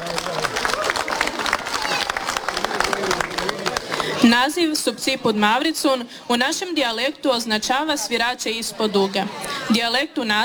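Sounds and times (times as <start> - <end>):
audience clapping for a children's dance performance: 0.0 - 4.4
laughter: 0.0 - 5.5, 7.7 - 10.4
speech: 4.4 - 10.4.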